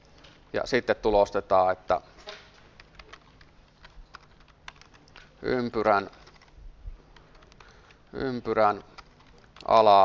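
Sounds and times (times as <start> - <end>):
speech: 0.5 - 2.1, 5.4 - 6.2, 8.1 - 8.9, 9.6 - 10.0
computer keyboard keys clicking while code is typed: 2.6 - 5.3, 5.9 - 10.0.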